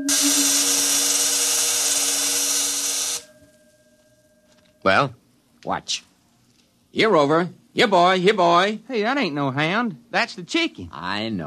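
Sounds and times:
energy field vibrating and discharging: 0.0s - 4.5s
speech: 0.1s - 0.4s, 4.8s - 6.1s, 6.9s - 11.4s.

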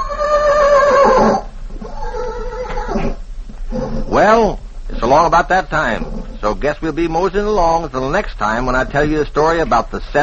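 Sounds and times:
horse Tarzan neighing: 0.0s - 5.1s, 5.8s - 6.5s
speech: 4.2s - 10.2s.

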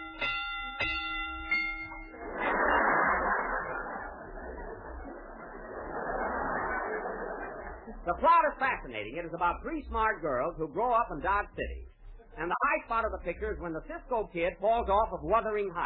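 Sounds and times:
bell dinging: 0.0s - 2.3s
laughter: 2.1s - 14.2s
speech: 8.1s - 11.8s, 12.4s - 15.8s.

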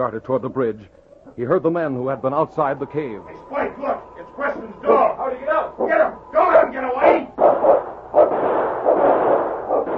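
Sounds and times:
speech: 0.0s - 7.2s
rumbling noise: 1.1s - 9.9s
gunshots: 6.5s - 9.9s.

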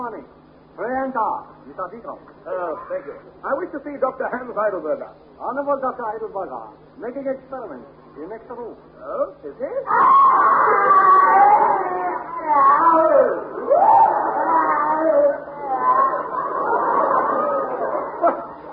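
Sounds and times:
speech: 0.1s - 14.4s
person screaming in pain: 9.9s - 16.2s
laughter: 13.5s - 18.7s.

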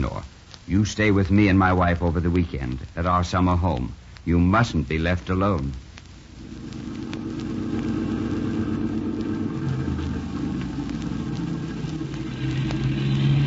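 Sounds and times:
speech: 0.0s - 5.8s
car engine humming: 6.3s - 13.4s
road rumble: 6.4s - 13.4s.

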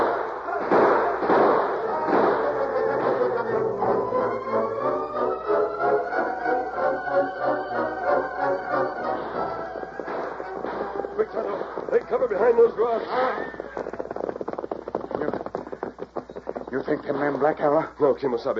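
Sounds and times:
gunfire sound effect shots: 0.0s - 5.3s, 8.2s - 13.8s
steady rhythmic pulsing: 0.0s - 17.2s
speech: 17.1s - 18.5s.

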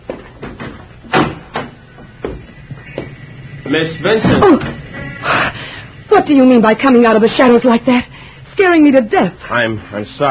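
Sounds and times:
door opening: 0.4s - 6.3s
speech: 3.7s - 4.8s, 6.2s - 10.2s.

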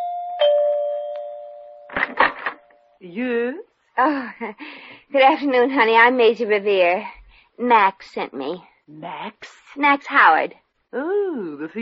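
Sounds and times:
doorbell chime: 0.0s - 1.9s
speech: 3.0s - 11.8s.

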